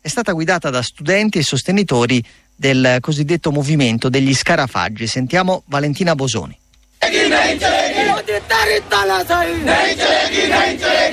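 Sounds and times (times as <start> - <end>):
speech: 0.1 - 6.6, 7.3 - 11.1
protest crowd chanting slogans: 7.0 - 11.1.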